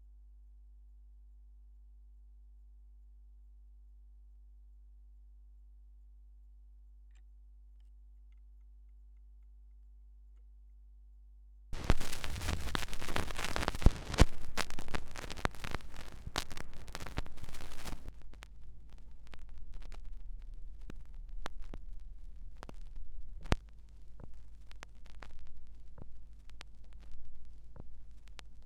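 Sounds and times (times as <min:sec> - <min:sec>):
vinyl record noise from a picture disc: 0:11.8 - 0:28.6.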